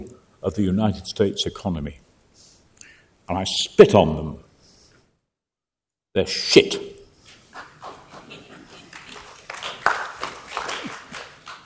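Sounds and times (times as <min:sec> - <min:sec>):
speech: 0:00.1 - 0:02.0, 0:03.3 - 0:04.5, 0:06.1 - 0:07.0
audience applause: 0:07.6 - 0:11.6.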